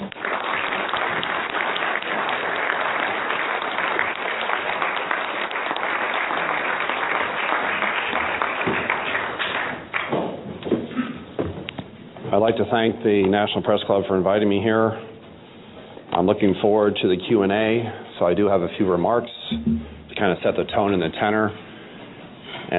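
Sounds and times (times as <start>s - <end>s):
audience clapping welcoming a speaker at the National Press Club: 0.0s - 10.2s
speech: 12.5s - 15.1s, 16.2s - 21.6s.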